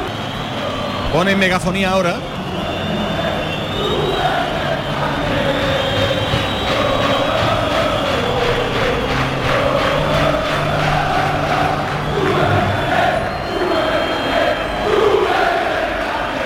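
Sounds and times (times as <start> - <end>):
stadium crowd chanting: 0.0 - 16.4
speech: 1.1 - 2.4.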